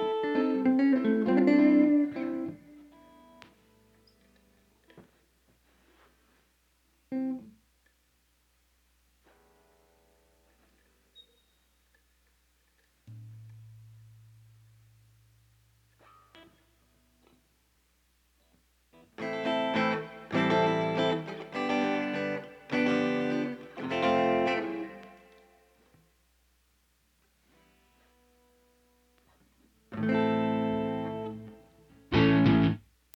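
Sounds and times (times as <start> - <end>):
ambient guitar: 0.0 - 5.2, 7.1 - 7.6, 13.1 - 17.4, 18.4 - 26.0, 27.4 - 32.9.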